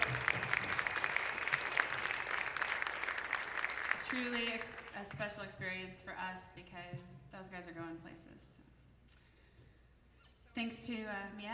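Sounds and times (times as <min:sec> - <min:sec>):
audience applause: 0:00.0 - 0:05.0
speech: 0:04.1 - 0:08.6, 0:10.6 - 0:11.5.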